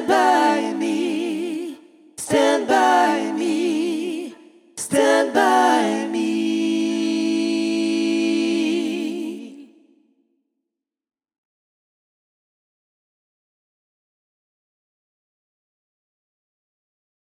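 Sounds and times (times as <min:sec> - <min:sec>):
a cappella gospel singing: 0:00.0 - 0:10.0.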